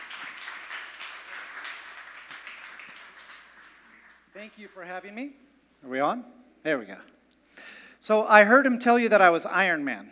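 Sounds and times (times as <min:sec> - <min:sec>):
welcoming applause: 0:00.0 - 0:04.8
speech: 0:04.4 - 0:07.2, 0:08.0 - 0:10.1.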